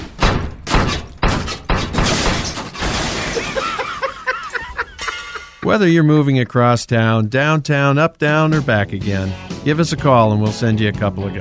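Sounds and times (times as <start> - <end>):
refrigerator crashing down the stairs: 0.0 - 3.8
rattling clattering debris: 0.2 - 4.1
laughter: 3.2 - 6.5
speech: 5.7 - 11.4.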